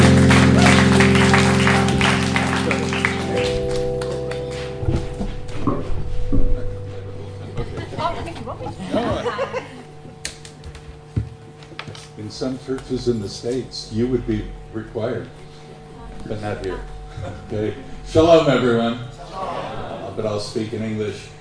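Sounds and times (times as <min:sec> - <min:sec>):
church congregation at Embassy Church in Belmore, Sydney applauding a guest speaker: 0:00.0 - 0:05.1
laughter: 0:07.2 - 0:10.3, 0:16.7 - 0:18.0, 0:19.2 - 0:20.3
speech: 0:12.7 - 0:15.4, 0:16.3 - 0:21.3.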